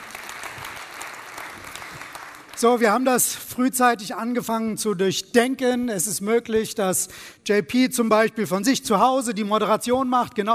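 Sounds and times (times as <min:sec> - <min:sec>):
audience applause: 0:00.0 - 0:02.6
speech: 0:02.6 - 0:10.5.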